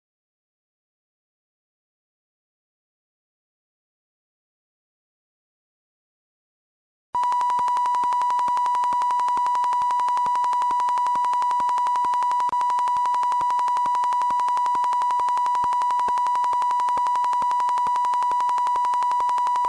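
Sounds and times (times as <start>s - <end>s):
sine wave tone: 7.2s - 19.6s.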